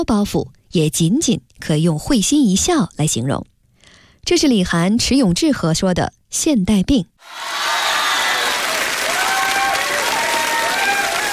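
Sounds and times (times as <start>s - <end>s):
speech: 0.0s - 3.5s, 4.2s - 7.6s
audience applause at a crosstalk and comedy-sketch competition: 7.2s - 11.3s.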